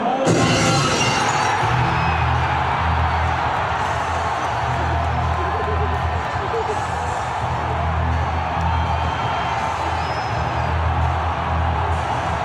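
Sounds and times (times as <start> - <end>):
stadium crowd cheering wrestler's entrance: 0.2 - 12.4
laughter: 3.0 - 12.4.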